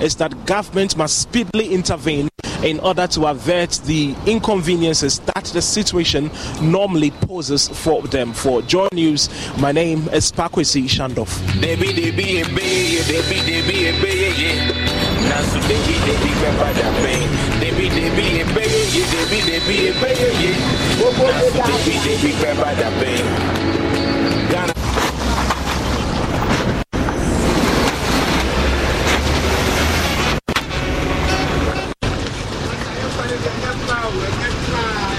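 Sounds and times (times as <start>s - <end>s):
speech: 0.0s - 24.0s
vehicle rattling over potholes on a damaged road toward Odoko: 9.3s - 35.1s.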